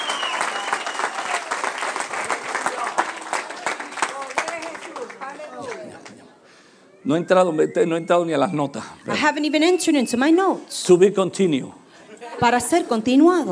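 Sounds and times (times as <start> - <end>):
audience applauding: 0.0 - 6.3
speech: 7.1 - 11.8, 12.4 - 13.5.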